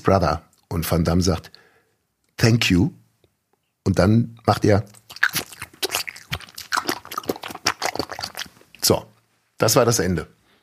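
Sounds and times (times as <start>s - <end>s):
speech: 0.0s - 1.6s, 2.4s - 3.0s, 3.9s - 5.0s, 8.9s - 10.4s
biting into a crusty bread roll and chewing: 4.9s - 8.8s.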